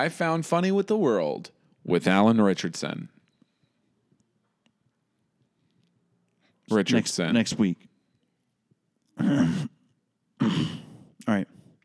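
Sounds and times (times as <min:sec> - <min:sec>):
speech: 0:00.0 - 0:03.2, 0:06.7 - 0:07.9, 0:09.2 - 0:09.7, 0:10.4 - 0:11.6
harsh loud coughs: 0:09.2 - 0:09.8, 0:10.4 - 0:11.1.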